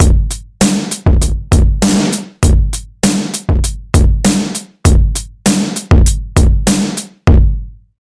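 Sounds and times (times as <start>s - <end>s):
drums: 0.0s - 7.8s.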